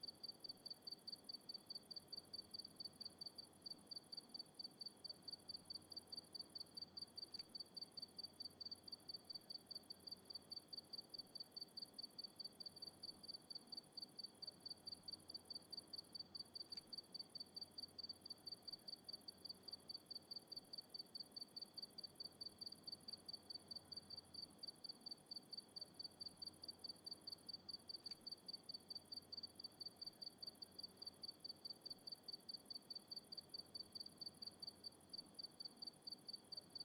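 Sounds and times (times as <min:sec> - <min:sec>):
crickets on a country night: 0:00.0 - 0:36.8.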